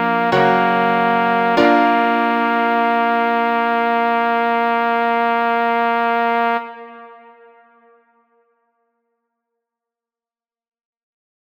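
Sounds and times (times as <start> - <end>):
trombone playing an Easter hymn: 0.0 - 7.2.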